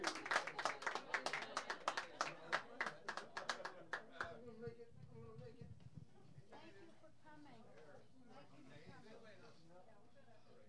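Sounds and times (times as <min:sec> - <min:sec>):
audience applause welcoming performers on stage: 0:00.0 - 0:04.0.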